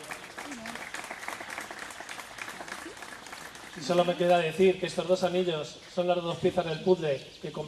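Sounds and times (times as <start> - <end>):
wedding guests applauding: 0.0 - 4.5
speech: 3.8 - 7.6.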